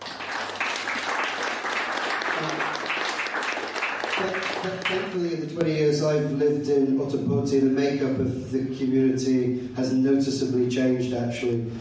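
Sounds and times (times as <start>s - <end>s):
crowd clapping: 0.0s - 5.3s
speech: 4.2s - 11.7s.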